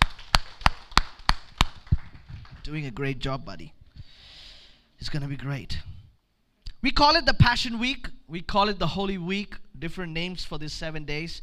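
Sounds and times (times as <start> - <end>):
person clapping hands: 0.0 - 2.8
speech: 2.7 - 3.8, 5.0 - 5.9, 6.8 - 11.4.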